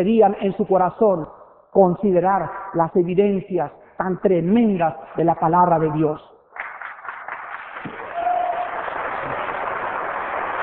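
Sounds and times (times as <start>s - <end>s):
speech: 0.0s - 6.3s
audience applause: 6.6s - 10.6s.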